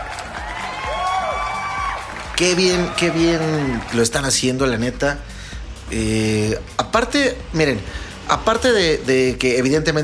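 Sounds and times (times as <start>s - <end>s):
applause: 0.0s - 4.3s
crowd cheering: 0.0s - 4.5s
speech: 2.4s - 5.3s, 5.9s - 10.0s.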